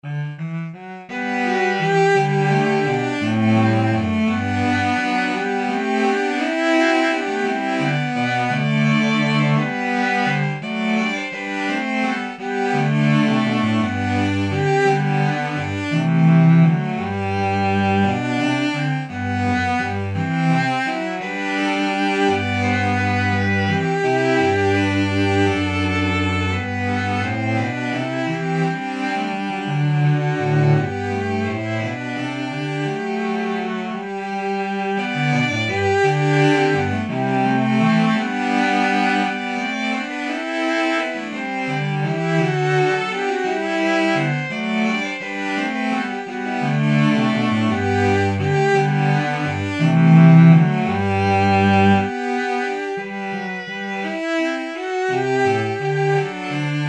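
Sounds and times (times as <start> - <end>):
baroque dance piece: 0.0 - 56.8.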